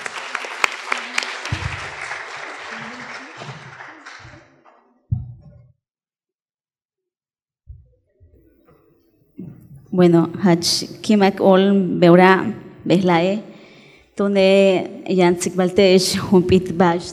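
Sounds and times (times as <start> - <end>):
audience applause: 0.0 - 4.8
speech: 10.0 - 13.5, 14.2 - 17.1.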